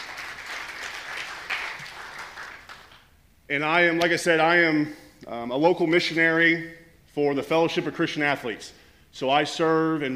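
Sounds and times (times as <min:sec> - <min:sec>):
audience clapping: 0:00.0 - 0:03.1
speech: 0:03.5 - 0:10.1.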